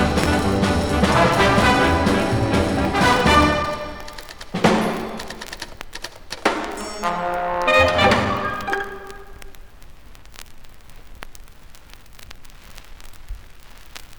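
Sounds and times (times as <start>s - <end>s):
orchestral overture: 0.0s - 4.9s, 6.6s - 9.5s.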